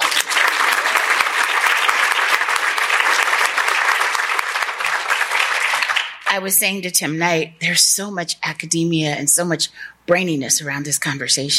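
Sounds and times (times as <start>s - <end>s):
sustained applause from a sizable audience: 0.0s - 6.3s
speech: 6.3s - 11.5s.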